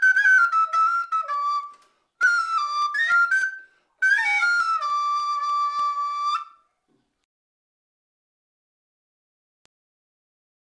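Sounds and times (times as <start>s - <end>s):
flute playing a tarantella: 0.0s - 6.7s.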